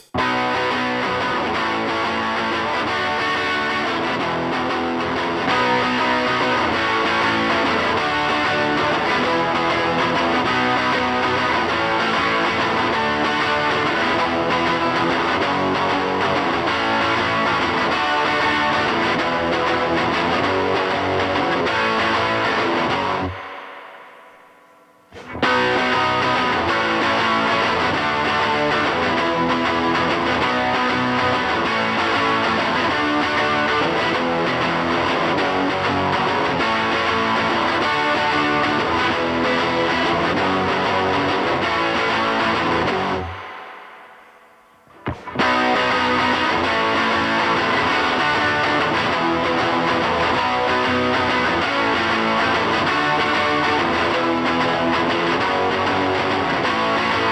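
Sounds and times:
guitar: 0.0 - 57.3.

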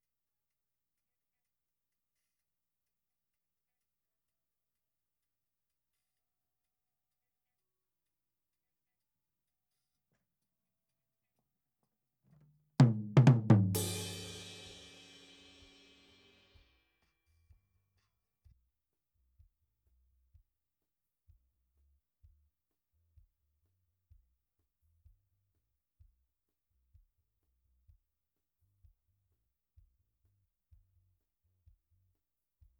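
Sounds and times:
tom drum: 12.8 - 16.1.

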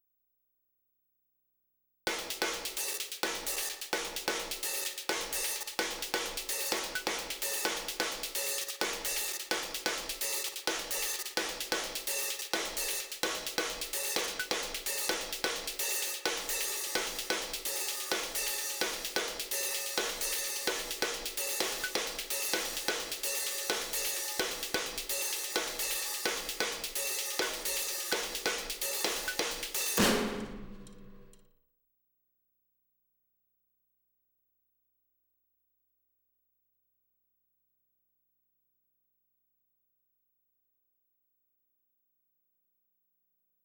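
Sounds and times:
verse drums stem: 2.1 - 31.4.

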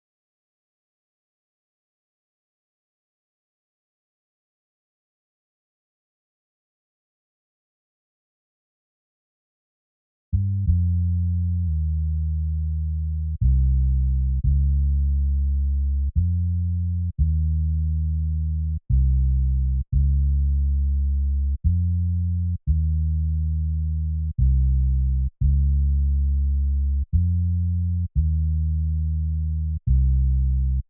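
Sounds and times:
bass: 10.3 - 30.8.

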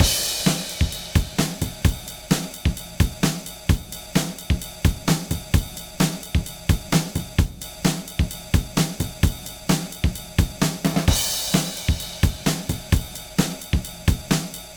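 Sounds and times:
drums: 0.0 - 14.7.

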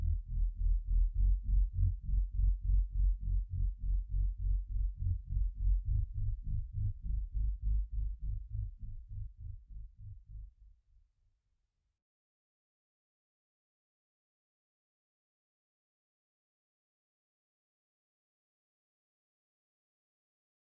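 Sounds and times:
bass: 0.0 - 10.8.

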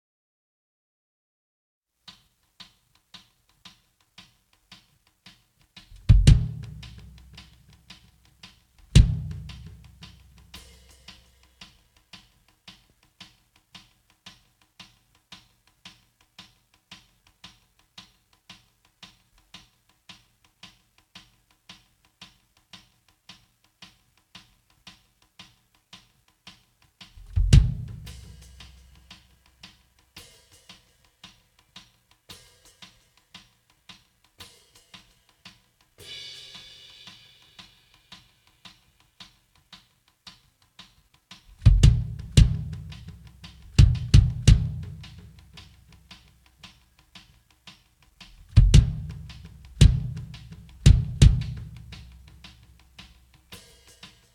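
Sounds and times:
drums: 2.0 - 54.3.

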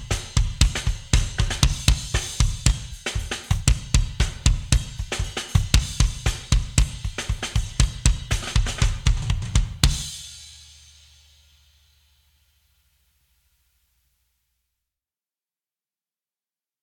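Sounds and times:
drums: 0.0 - 12.8.

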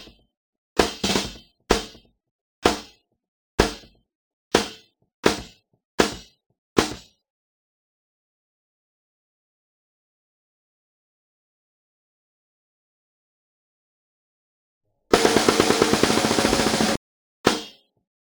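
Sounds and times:
snare drum: 0.8 - 3.0, 3.6 - 4.0, 4.6 - 7.1, 15.1 - 17.8.

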